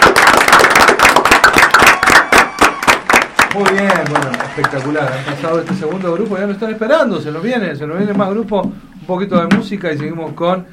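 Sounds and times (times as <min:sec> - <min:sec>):
audience applause: 0:00.0 - 0:06.6
speech: 0:03.6 - 0:10.7.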